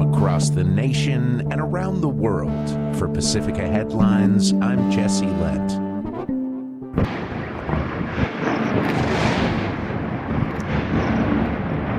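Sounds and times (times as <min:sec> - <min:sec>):
speech: 0:00.2 - 0:05.9
explosions from Russian airstrikes over Kyiv: 0:07.0 - 0:11.9.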